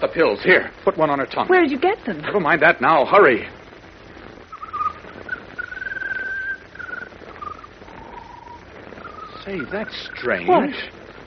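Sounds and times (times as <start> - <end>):
speech: 0.0 - 3.6, 9.5 - 11.0
soft hiss: 0.0 - 11.2
bird singing a peculiar song of drawn-out whistled notes: 4.5 - 10.5.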